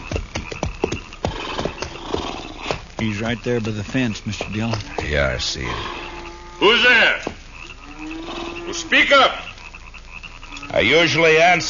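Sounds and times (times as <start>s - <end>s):
horses' hooves clip-clopping as they are reined in on a dry prairie: 0.0s - 9.6s
speech: 3.0s - 6.0s, 6.6s - 7.4s, 8.7s - 9.5s, 10.8s - 11.6s.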